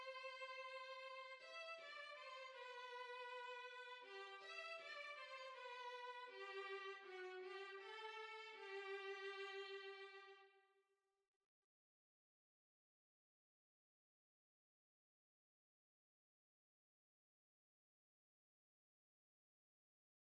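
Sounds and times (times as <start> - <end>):
violin: 0.0 - 10.5.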